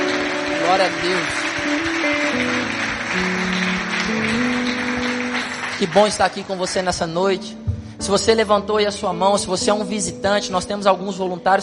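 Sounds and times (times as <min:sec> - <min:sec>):
audience applause: 0:00.0 - 0:07.2
speech: 0:00.7 - 0:04.6, 0:05.8 - 0:11.6.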